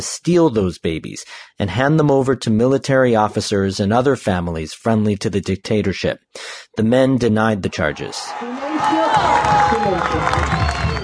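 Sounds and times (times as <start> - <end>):
speech: 0.0 - 10.7
overlapping voices in a packed courtroom: 7.6 - 11.0
relatives of stolen children cheering in a packed courtroom: 7.6 - 11.0
clapping in a packed courtroom: 8.4 - 11.0.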